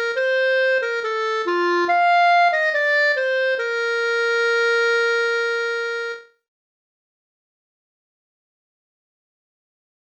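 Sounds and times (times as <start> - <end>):
old alpine yodel tune, instrumental: 0.0 - 6.4.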